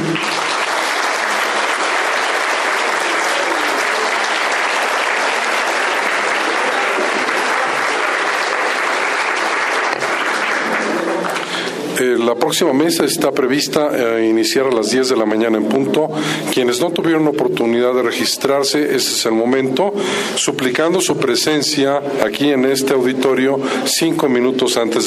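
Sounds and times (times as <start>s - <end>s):
audience applause: 0.0s - 11.8s
speech: 12.3s - 25.0s.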